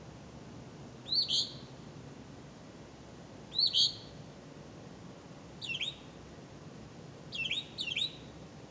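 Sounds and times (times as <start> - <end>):
bird chirps: 1.0 - 1.8, 3.5 - 4.2, 5.6 - 6.2, 7.3 - 8.4.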